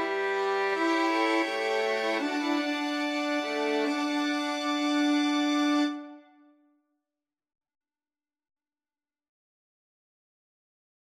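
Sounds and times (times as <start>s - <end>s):
violin ensemble: 0.0s - 6.4s.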